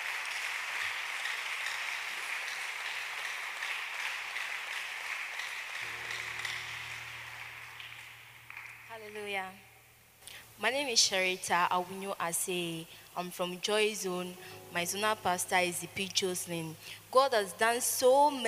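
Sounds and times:
audience applause: 0.0 - 9.3
speech: 9.0 - 9.7, 10.6 - 18.4.

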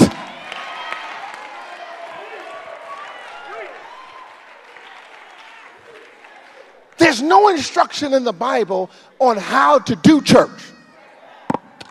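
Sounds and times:
audience clapping hands: 0.0 - 7.0
speech: 7.1 - 10.7.

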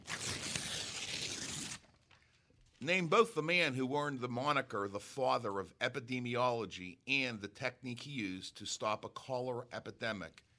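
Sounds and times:
envelope being torn open: 0.0 - 2.2
speech: 2.8 - 10.5.

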